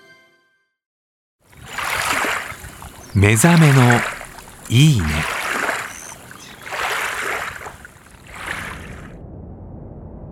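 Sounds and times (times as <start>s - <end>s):
clam fishing boat on a quiet marsh: 1.4s - 9.2s
speech: 3.1s - 5.4s.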